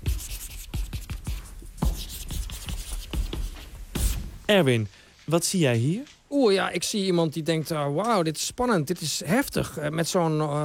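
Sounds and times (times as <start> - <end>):
rubbing and scratching strokes of drawing an emoji on a board: 0.0 - 4.2
speech: 4.5 - 10.6.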